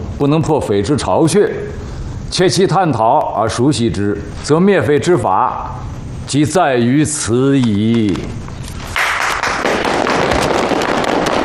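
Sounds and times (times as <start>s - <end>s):
speech: 0.2s - 8.5s
crowd applauding: 8.9s - 11.4s.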